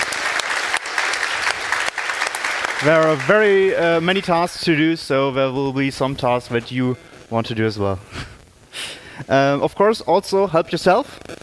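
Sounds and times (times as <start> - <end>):
audience applause: 0.0 - 4.5
speech: 2.8 - 8.3, 9.2 - 11.3.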